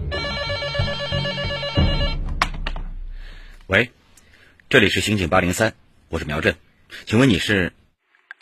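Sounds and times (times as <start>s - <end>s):
telephone bell ringing: 0.1s - 2.2s
speech: 3.7s - 4.0s, 4.7s - 7.8s.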